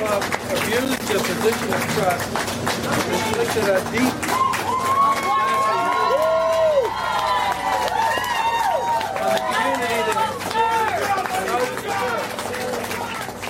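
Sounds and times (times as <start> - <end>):
speech: 0.1 - 4.5
large crowd cheering outside courthouse: 4.2 - 13.4.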